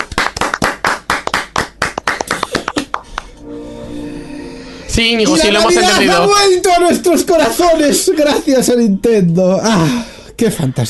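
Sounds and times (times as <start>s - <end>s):
applause: 0.0s - 3.4s
speech: 5.0s - 10.8s.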